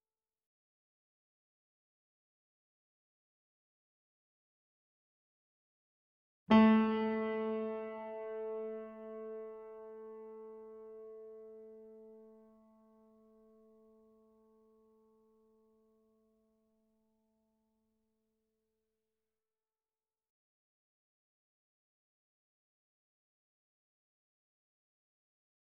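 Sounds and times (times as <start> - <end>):
KORG grand piano chord C3 E3 A3 with effects: 6.5 - 12.3.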